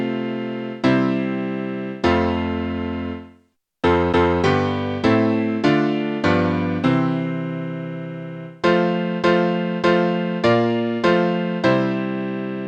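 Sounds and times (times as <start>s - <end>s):
piano piece: 0.0s - 12.6s.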